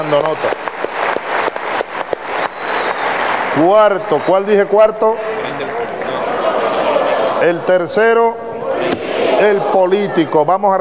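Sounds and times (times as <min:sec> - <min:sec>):
speech: 0:00.0 - 0:00.9, 0:03.6 - 0:05.7, 0:07.4 - 0:08.4, 0:09.4 - 0:10.7
class audience applause: 0:00.0 - 0:07.4.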